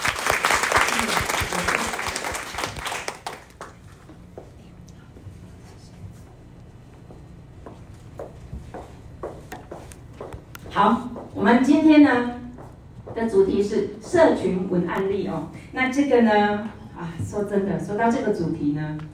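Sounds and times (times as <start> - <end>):
applause: 0.0 - 4.0
speech: 10.8 - 12.4, 13.2 - 19.1.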